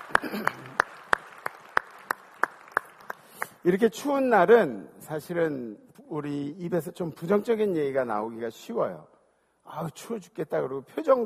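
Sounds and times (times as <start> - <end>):
audience applause: 0.0 - 3.5
speech: 3.6 - 9.1, 9.7 - 11.2.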